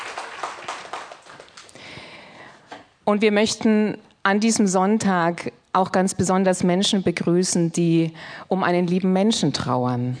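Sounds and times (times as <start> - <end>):
congregation applauding at a Sunday church service: 0.0 - 1.8
speech: 3.1 - 10.1.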